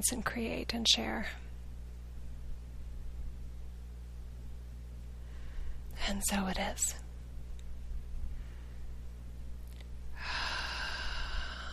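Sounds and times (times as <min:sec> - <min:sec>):
speech: 0:00.0 - 0:01.4, 0:06.1 - 0:07.1
low steady hum: 0:00.0 - 0:11.7
deep breath drawn in: 0:05.2 - 0:05.9, 0:10.1 - 0:11.7.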